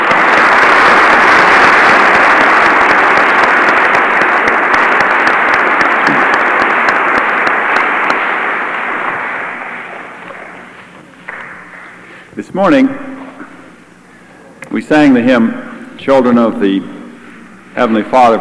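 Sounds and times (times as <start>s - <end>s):
audience applause: 0.0s - 12.3s
speech: 12.5s - 13.0s, 14.9s - 16.9s, 17.8s - 18.3s.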